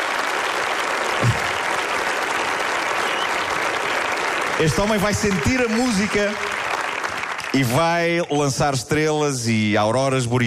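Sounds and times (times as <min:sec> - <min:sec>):
audience applause: 0:00.0 - 0:08.3
speech: 0:04.6 - 0:06.5, 0:07.6 - 0:10.4.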